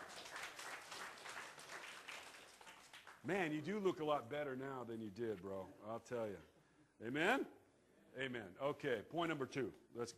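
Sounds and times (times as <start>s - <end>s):
applause: 0.0s - 3.6s
speech: 3.2s - 7.6s, 8.2s - 10.1s.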